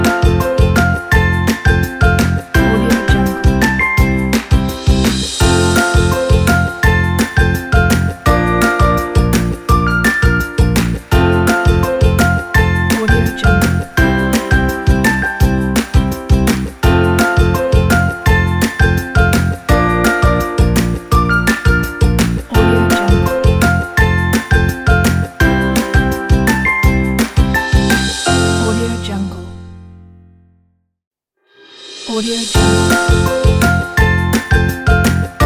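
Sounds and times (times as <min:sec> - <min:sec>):
happy upbeat music: 0:00.0 - 0:29.8, 0:31.8 - 0:35.4.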